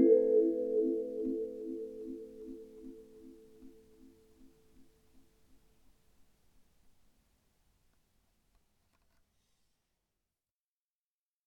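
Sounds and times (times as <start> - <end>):
Sansula Elektra kalimba recorded with a microphone: 0.0 - 3.8.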